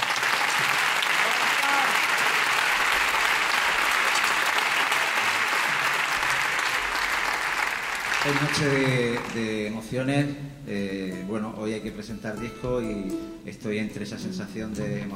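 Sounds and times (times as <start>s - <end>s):
audience applause: 0.0s - 9.6s
speech: 8.2s - 15.1s.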